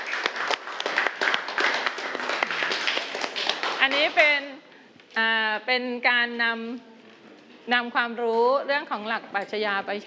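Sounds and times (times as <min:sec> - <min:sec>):
classroom clapping: 0:00.0 - 0:04.4
speech: 0:03.9 - 0:04.5, 0:05.2 - 0:06.9, 0:07.7 - 0:10.0.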